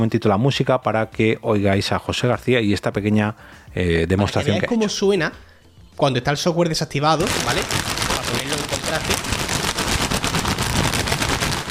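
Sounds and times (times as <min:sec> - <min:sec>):
speech: 0:00.0 - 0:09.4
crisp packet being crumpled and handled: 0:07.2 - 0:11.6.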